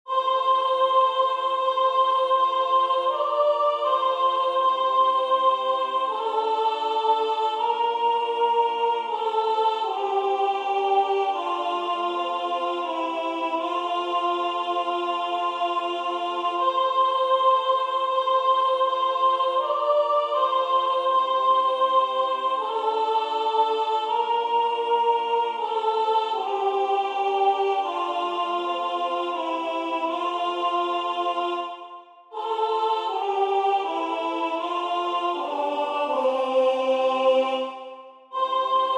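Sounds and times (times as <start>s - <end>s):
soprano singing practice track: 0.1s - 38.9s.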